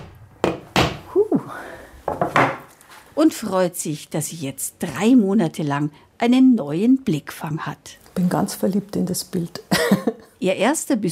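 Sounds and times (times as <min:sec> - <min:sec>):
hammer driving a nail into a wall: 0:00.0 - 0:01.0
speech: 0:03.2 - 0:11.1.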